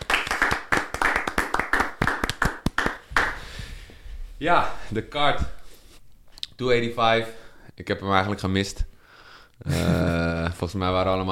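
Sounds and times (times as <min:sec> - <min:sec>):
small round of applause: 0:00.0 - 0:03.5
speech: 0:04.4 - 0:05.6, 0:06.6 - 0:08.9, 0:09.6 - 0:10.0, 0:10.6 - 0:11.3.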